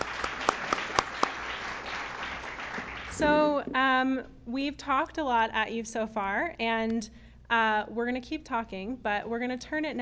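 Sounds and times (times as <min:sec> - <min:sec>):
audience applause: 0:00.0 - 0:03.3
speech: 0:03.2 - 0:09.9.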